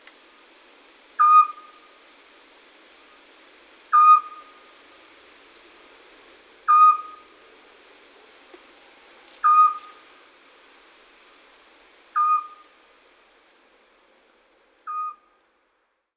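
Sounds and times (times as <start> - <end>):
Eurasian scops owl uttering a monotonous short whistle: 1.2 - 1.8, 3.9 - 4.6, 6.7 - 7.2, 9.4 - 10.0, 12.2 - 12.6, 14.9 - 15.3.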